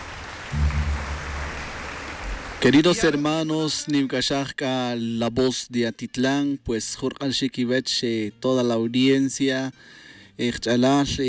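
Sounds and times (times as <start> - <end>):
audience applause: 0.0 - 2.8
low humming tone: 0.5 - 2.6
speech: 2.6 - 11.2.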